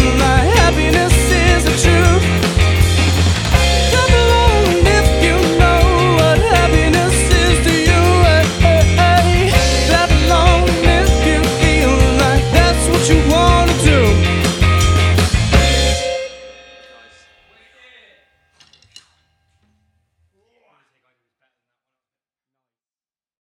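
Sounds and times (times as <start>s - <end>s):
rock pop band: 0.0s - 17.1s.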